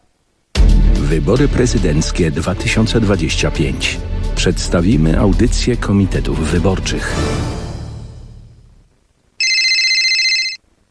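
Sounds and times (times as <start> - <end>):
speech: 1.1 - 7.5
telephone ringing: 9.4 - 10.6.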